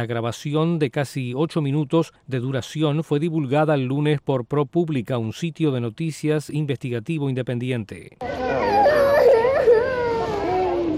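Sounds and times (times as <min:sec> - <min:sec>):
speech: 0:00.0 - 0:09.0
child crying: 0:08.2 - 0:10.9.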